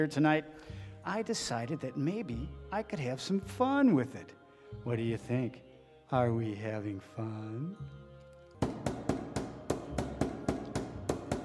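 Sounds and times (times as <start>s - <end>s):
speech: 0.0s - 8.0s
knocking on a door: 8.6s - 11.4s.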